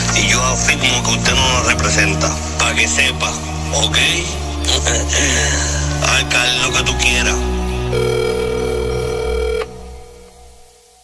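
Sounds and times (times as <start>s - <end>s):
speech: 0.5s - 8.4s
telephone ringing: 7.9s - 10.0s.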